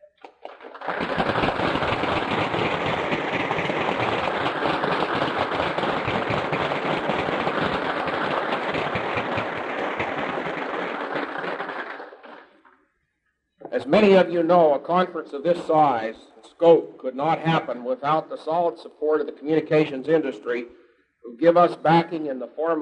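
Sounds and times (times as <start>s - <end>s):
audience applause: 0.0s - 12.6s
speech: 13.9s - 22.8s.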